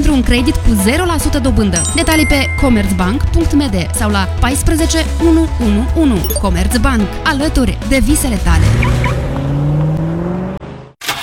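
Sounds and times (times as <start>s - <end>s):
speech: 0.1s - 9.1s
car engine starting in a radio ad: 7.9s - 11.2s.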